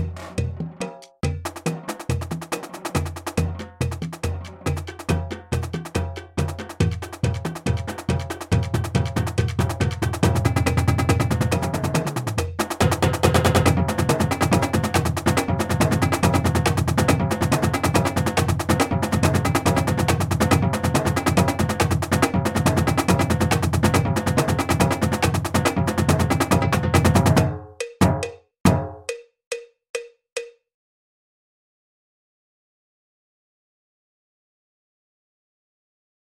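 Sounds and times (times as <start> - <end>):
drumline playing: 0.0 - 29.0.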